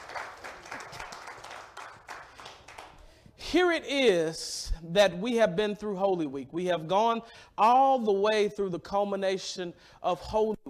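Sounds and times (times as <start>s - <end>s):
church congregation clapping during a Holy Week service: 0.0s - 3.3s
speech: 3.5s - 10.6s.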